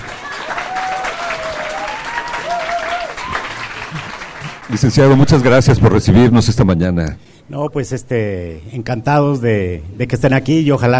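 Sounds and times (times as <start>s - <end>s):
audience applause: 0.0s - 5.6s
speech: 4.7s - 10.9s.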